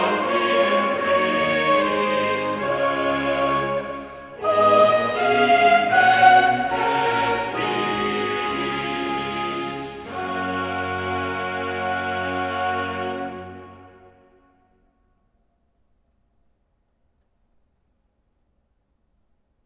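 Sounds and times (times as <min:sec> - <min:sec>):
choral cantata: 0:00.0 - 0:14.4.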